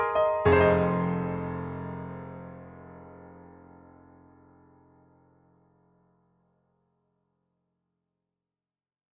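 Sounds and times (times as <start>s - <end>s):
dull piano: 0.0s - 6.6s.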